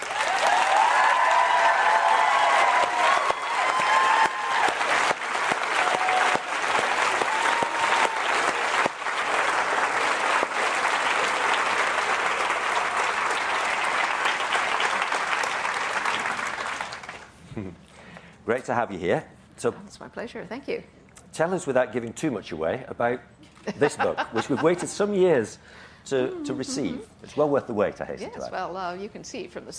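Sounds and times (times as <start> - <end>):
audience applause at the Edinburgh International Book Festival: 0.0 - 17.4
speech: 18.6 - 29.7
laughter: 23.7 - 25.2.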